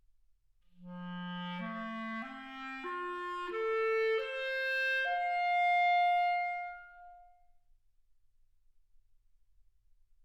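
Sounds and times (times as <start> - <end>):
clarinet: 0.7 - 7.4.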